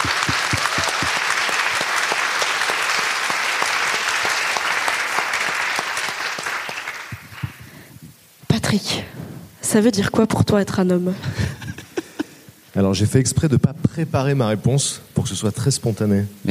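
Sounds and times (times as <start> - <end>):
audience applauding: 0.0 - 7.7
speech: 9.8 - 11.6, 12.8 - 16.4.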